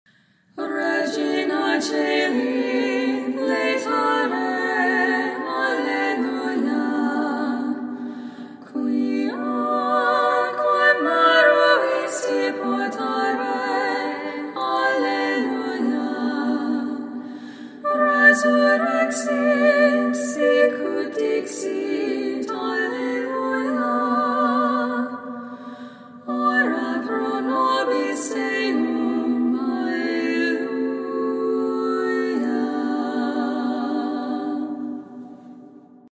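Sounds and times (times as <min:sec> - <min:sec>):
Catholic Gregorian chant Marian antiphon: 0:00.6 - 0:35.7.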